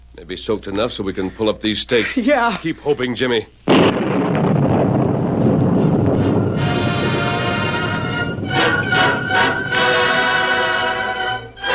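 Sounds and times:
speech: 0.2 - 3.9
thunder: 3.7 - 11.3
rain: 4.0 - 11.6.

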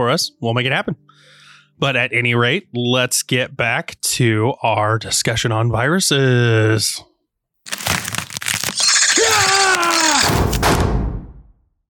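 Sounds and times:
speech: 0.0 - 8.1, 9.2 - 11.1
gunshots: 10.0 - 11.4.

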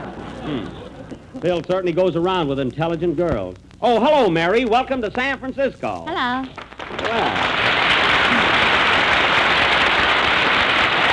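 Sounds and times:
speech: 0.4 - 0.8, 1.4 - 7.6
audience applause: 6.6 - 11.1.

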